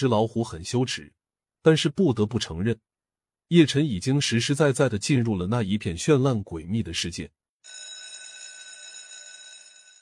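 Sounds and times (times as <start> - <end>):
speech: 0.0 - 2.9, 3.5 - 7.8
school class bell ringing: 7.7 - 10.0.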